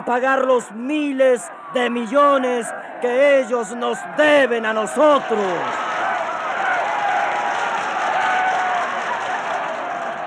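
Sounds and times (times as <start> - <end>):
speech: 0.0 - 5.8
crowd cheering: 0.0 - 10.2
crowd applauding a speech: 4.8 - 10.2.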